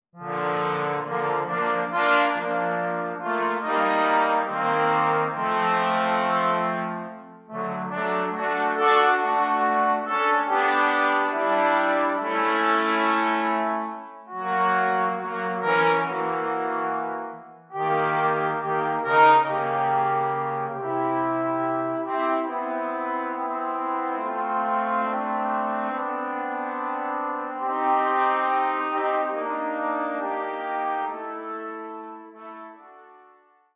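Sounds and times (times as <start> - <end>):
fanfare on three trombones: 0.2 - 33.4.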